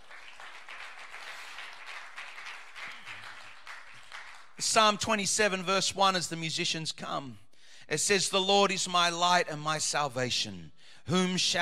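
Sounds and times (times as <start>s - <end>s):
audience clapping hands: 0.0s - 5.2s
speech: 4.6s - 11.6s.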